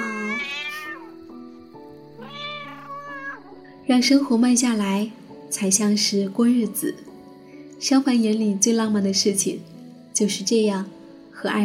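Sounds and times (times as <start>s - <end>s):
cat meowing: 0.0s - 1.2s, 2.2s - 3.6s
speech: 3.9s - 7.1s, 7.8s - 11.6s.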